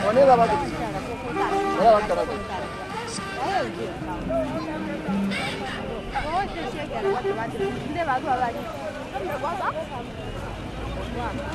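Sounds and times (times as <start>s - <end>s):
low rumble of a 4x4 vehicle: 0.0s - 11.5s
several people talking over a 4x4 ride: 0.0s - 11.5s.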